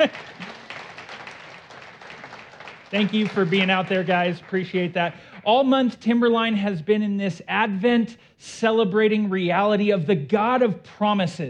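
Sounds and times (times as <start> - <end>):
speech: 0.0 - 0.4, 2.9 - 11.4
round of applause: 0.0 - 5.4.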